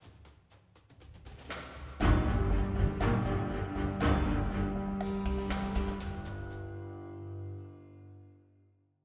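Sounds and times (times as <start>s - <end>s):
string instrument: 1.2s - 8.6s.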